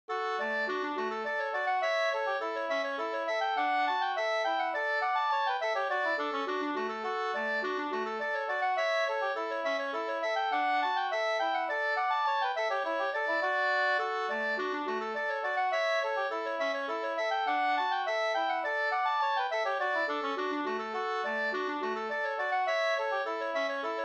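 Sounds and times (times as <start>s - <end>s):
slängpolska folk dance tune: 0.1s - 24.0s.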